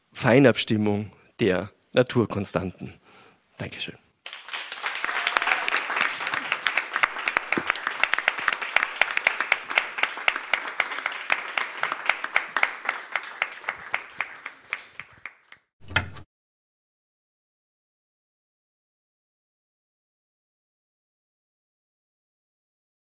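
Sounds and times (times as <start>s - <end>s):
speech: 0.2s - 3.0s, 3.6s - 4.0s
crowd applauding: 4.2s - 15.7s.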